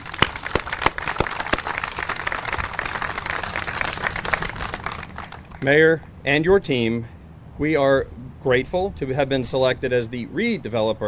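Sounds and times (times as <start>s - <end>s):
heavy applause: 0.0s - 5.7s
speech: 5.6s - 11.0s.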